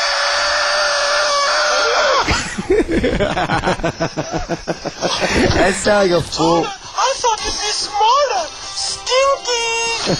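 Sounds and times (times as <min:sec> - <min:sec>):
dental drill whining on teeth: 0:00.0 - 0:02.2
cackling snicker-like bursts: 0:02.2 - 0:05.8
speech: 0:03.0 - 0:10.1.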